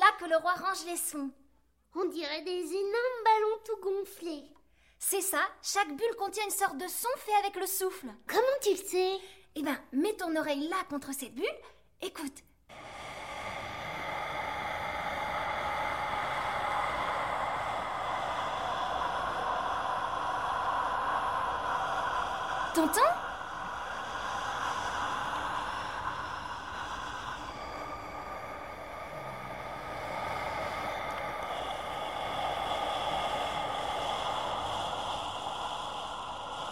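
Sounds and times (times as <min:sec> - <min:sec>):
speech: 0:00.2 - 0:12.8, 0:22.8 - 0:23.2
calm steady wind blowing: 0:12.7 - 0:36.6.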